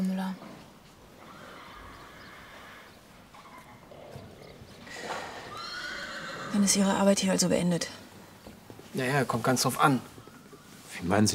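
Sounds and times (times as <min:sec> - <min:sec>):
horse hooves: 0:00.3 - 0:11.3
horse neighing: 0:01.0 - 0:07.2
speech: 0:06.6 - 0:08.0, 0:09.0 - 0:10.2, 0:11.0 - 0:11.3.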